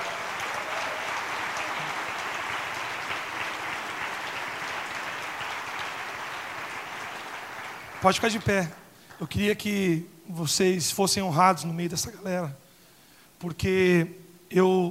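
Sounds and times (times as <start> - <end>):
crowd applauding: 0.0 - 9.3
speech: 8.0 - 12.6, 13.4 - 14.8.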